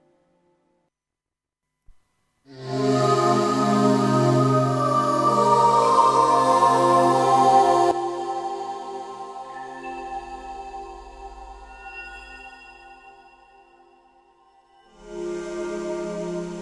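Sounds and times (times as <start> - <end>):
pad with piano through PCM60 reverb: 2.5 - 14.0, 14.8 - 16.5.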